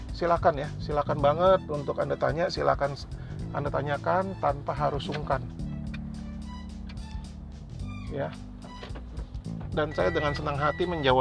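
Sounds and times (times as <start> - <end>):
car engine and road rumble heard from inside the cabin: 0.0 - 11.1
speech: 0.2 - 5.6, 8.1 - 8.5, 9.8 - 11.1.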